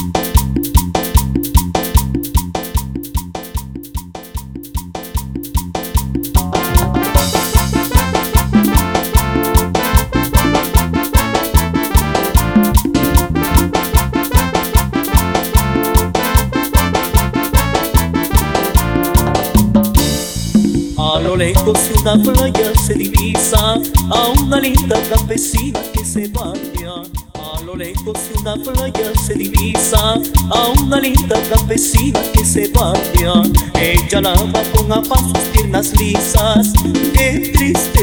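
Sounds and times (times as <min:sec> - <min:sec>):
a cappella intro melody: 0:00.2 - 0:38.0.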